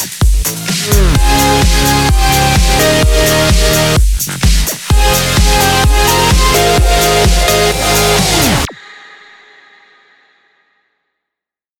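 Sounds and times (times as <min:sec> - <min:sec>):
remix music: 0:00.0 - 0:08.8.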